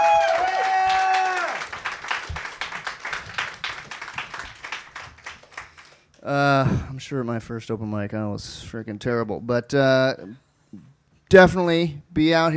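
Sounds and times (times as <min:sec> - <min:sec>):
round of applause: 0:00.0 - 0:06.2
speech: 0:06.3 - 0:12.5.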